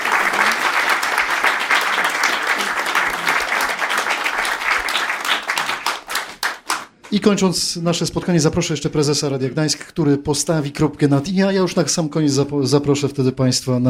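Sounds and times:
studio audience applause: 0.0 - 6.9
speech: 7.1 - 13.8.

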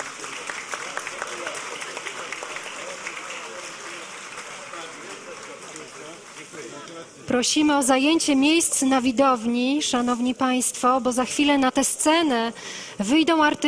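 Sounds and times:
audience applauding: 0.0 - 6.8
speech: 7.3 - 13.6.

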